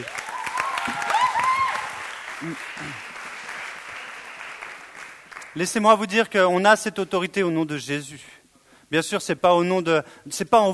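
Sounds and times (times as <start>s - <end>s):
high cheers: 0.0s - 4.4s
audience applauding: 0.0s - 5.8s
murmured voice: 2.4s - 3.1s
speech: 2.4s - 3.1s, 5.6s - 10.7s.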